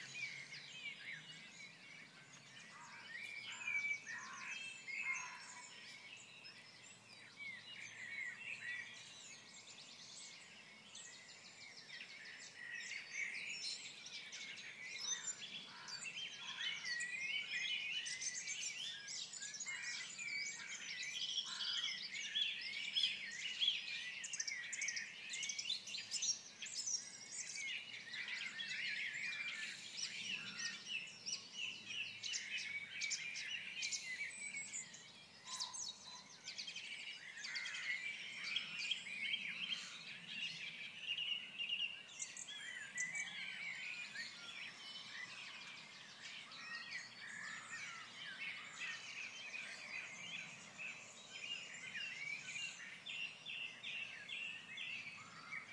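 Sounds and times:
birds singing in the dawn chorus: 0.0 - 55.7.

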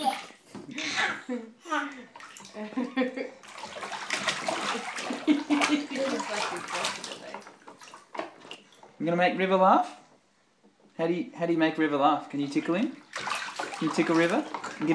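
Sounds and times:
speech: 1.3 - 3.4, 9.0 - 10.0, 11.0 - 14.9
child splashing water in bathtub: 2.0 - 8.9, 12.6 - 14.9.

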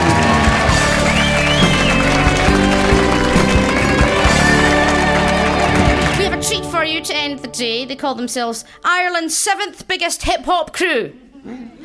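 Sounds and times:
crowd clapping and cheering: 0.0 - 7.0
speech: 7.0 - 11.8.

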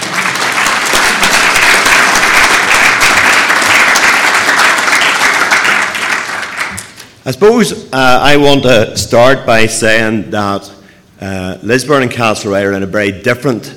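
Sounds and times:
audience round of applause: 0.0 - 7.0
speech: 7.3 - 13.7.

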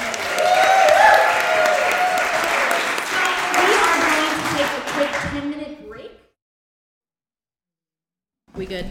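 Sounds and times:
audience applause for a pair of women: 0.0 - 5.7.

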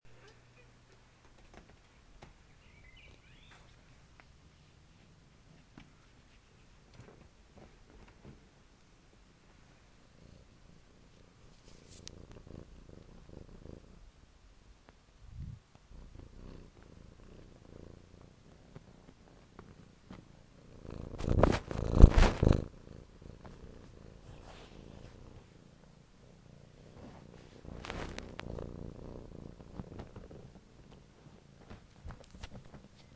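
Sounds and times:
purring: 9.6 - 14.1, 15.3 - 33.1.

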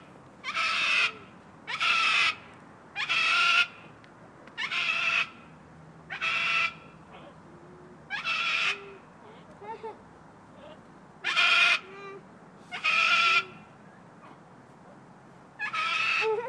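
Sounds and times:
Moluccan cockatoo calling: 0.4 - 2.4, 3.0 - 3.8, 4.6 - 5.4, 6.1 - 9.1, 10.6 - 14.4, 15.6 - 16.4.

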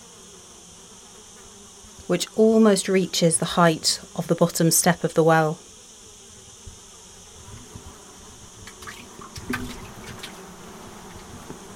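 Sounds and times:
flies buzzing around splashed water: 0.0 - 11.7
speech: 2.1 - 5.7
water being splashed: 8.6 - 10.4.

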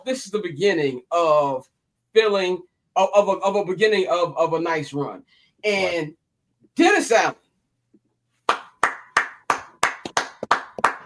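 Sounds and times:
speech: 0.0 - 6.2, 6.8 - 7.4
hands clapping, applause: 8.4 - 11.0.

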